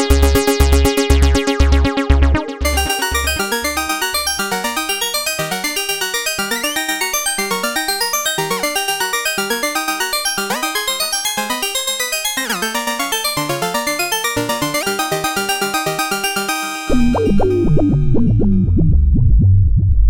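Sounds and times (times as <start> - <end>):
pulse arpeggio: 0.2 - 19.9.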